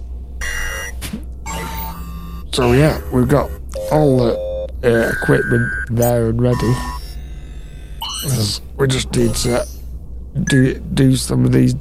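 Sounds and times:
low hum: 0:00.0 - 0:11.7
electronic alarm clock ringing: 0:00.4 - 0:08.6, 0:09.2 - 0:09.8
speech: 0:02.5 - 0:07.0, 0:08.2 - 0:09.8, 0:10.4 - 0:11.7.

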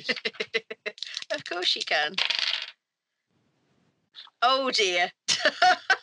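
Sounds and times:
speech: 0:00.0 - 0:00.4, 0:01.6 - 0:02.5, 0:04.4 - 0:05.9
laughter: 0:00.0 - 0:01.3, 0:05.3 - 0:06.0
dice rolling across a hard tabletop: 0:01.0 - 0:02.8.

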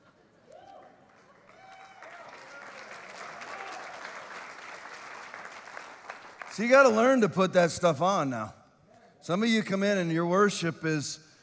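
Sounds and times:
audience clapping: 0:00.8 - 0:07.2
speech: 0:06.6 - 0:08.6, 0:09.3 - 0:11.3.

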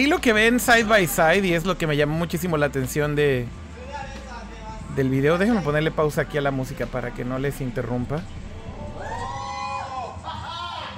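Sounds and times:
speech: 0:00.0 - 0:03.6, 0:05.0 - 0:08.4
excited crowd shouting and cheering in a video: 0:08.8 - 0:10.9.

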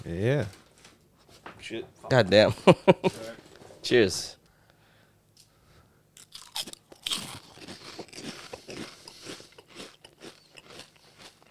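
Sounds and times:
speech: 0:00.1 - 0:00.6, 0:01.7 - 0:04.4
crunching on deep fried seaweed snacks: 0:06.2 - 0:11.4.

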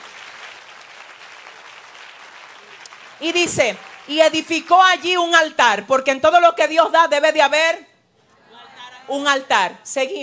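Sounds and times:
audience applause: 0:00.0 - 0:04.7
speech: 0:03.2 - 0:07.9, 0:09.1 - 0:10.2.

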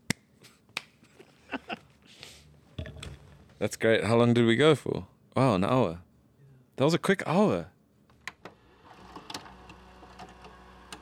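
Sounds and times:
sharp hand claps: 0:00.1 - 0:01.0
speech: 0:03.6 - 0:06.0, 0:06.8 - 0:07.7.

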